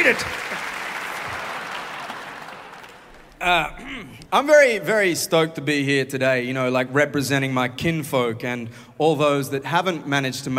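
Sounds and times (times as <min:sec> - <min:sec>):
crowd applauding: 0:00.0 - 0:04.3
speech: 0:00.1 - 0:00.7, 0:03.4 - 0:10.5.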